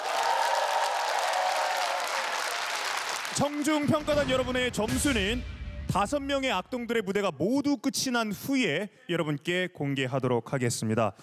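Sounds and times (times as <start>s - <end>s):
large audience applause: 0.0s - 4.0s
speech: 3.4s - 11.2s.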